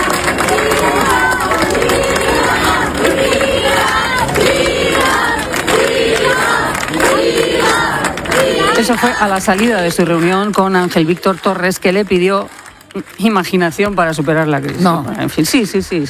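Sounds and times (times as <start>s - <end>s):
large crowd cheering and shouting: 0.0s - 10.3s
large crowd applauding: 0.0s - 15.8s
speech: 8.9s - 16.0s.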